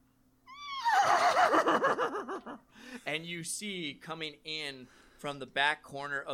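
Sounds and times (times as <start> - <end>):
horse whinny as the call of a flaming dreadsteed: 0.6 - 1.7
laughter: 1.2 - 2.6
speech: 2.4 - 6.3.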